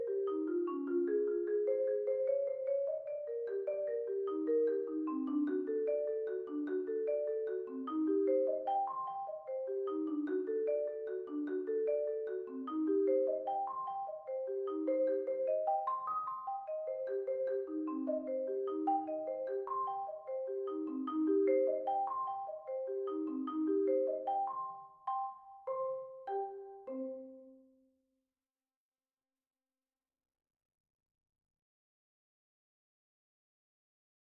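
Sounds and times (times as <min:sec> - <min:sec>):
front ensemble percussion playing triplet arpeggio warm-up: 0:00.0 - 0:27.1.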